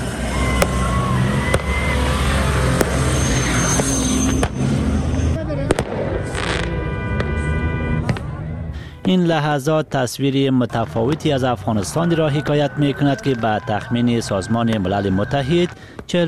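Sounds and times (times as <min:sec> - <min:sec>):
fireworks at a desert celebration: 0:00.5 - 0:04.7, 0:05.4 - 0:08.3, 0:14.6 - 0:16.2
speech: 0:09.1 - 0:16.2.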